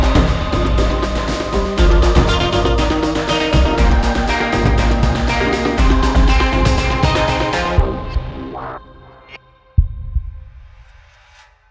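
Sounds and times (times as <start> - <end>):
electric guitars: 0.0 - 9.2
action trailer music: 0.0 - 11.0.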